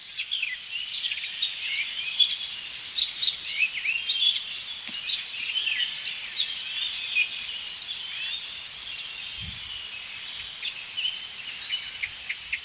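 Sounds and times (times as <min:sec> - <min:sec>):
icterine warbler singing with mimicry of other birds: 0:00.0 - 0:12.6.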